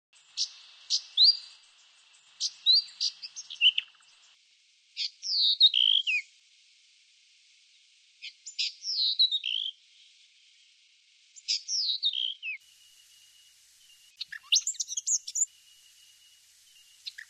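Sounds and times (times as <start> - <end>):
brown thornbill warbled song in a garden in Canberra Australia: 0.2 - 4.4, 5.0 - 6.3, 8.2 - 9.7, 11.4 - 12.6, 14.0 - 16.0, 16.7 - 17.2.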